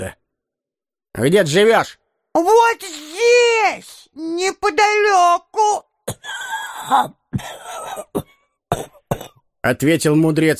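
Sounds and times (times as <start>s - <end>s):
speech: 1.2s - 8.0s, 9.6s - 10.5s
old sage coughing with a terrible wheeze and shortness of breath: 7.3s - 9.5s.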